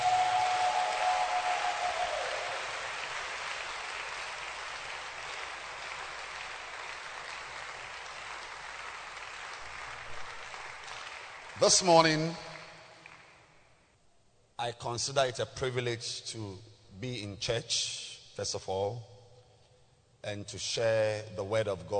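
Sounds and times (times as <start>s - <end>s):
audience clapping: 0.0s - 13.6s
speech: 11.6s - 12.4s, 14.6s - 19.1s, 20.2s - 21.9s.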